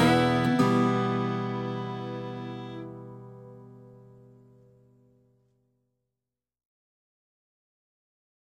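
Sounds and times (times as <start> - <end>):
bagpipes: 0.0 - 3.1.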